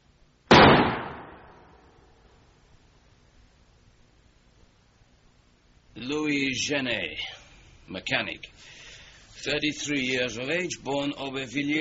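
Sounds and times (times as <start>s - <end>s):
revolver gunshot: 0.5s - 2.0s
speech: 6.0s - 8.8s, 9.4s - 11.7s.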